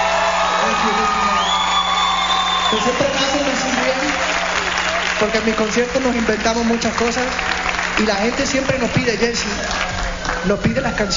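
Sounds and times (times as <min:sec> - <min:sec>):
concert audience cheering and whooping for the musicians: 0:00.0 - 0:06.2, 0:08.8 - 0:11.1
speech: 0:02.7 - 0:03.5, 0:05.2 - 0:11.1.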